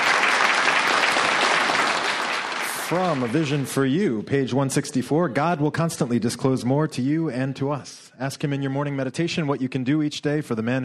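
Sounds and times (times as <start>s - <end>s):
round of applause from a group: 0.0s - 3.9s
speech: 2.9s - 10.8s.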